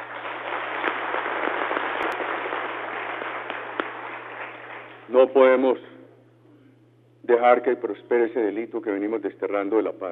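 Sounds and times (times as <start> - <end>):
crowd applauding: 0.0 - 5.1
low constant electrical hum: 0.0 - 10.1
speech: 5.1 - 5.9, 7.3 - 10.1.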